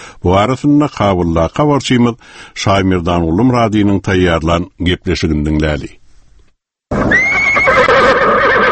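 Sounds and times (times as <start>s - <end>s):
speech: 0.2s - 6.0s
horse neighing at President Hamid Karzai's stable in Afghanistan: 6.9s - 8.7s.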